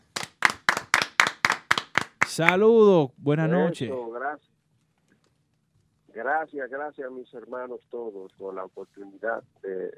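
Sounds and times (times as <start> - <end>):
sharp evenly spaced hand claps: 0.0 - 2.6
speech: 2.4 - 4.5, 6.2 - 9.9.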